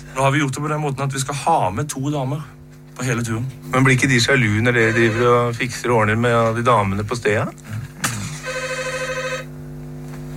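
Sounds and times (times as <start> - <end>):
speech: 0.1 - 7.9
telephone ringing with a warbling electronic ring: 4.4 - 5.6, 8.4 - 9.5.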